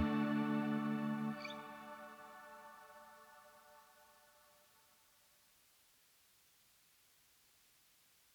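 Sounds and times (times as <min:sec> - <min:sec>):
reggae remix music: 0:00.0 - 0:02.6.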